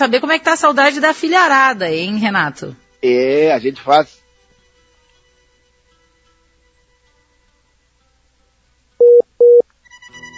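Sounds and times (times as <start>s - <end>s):
speech: 0.0s - 4.2s
telephone tone beeps while redialing a lost call: 9.0s - 9.6s.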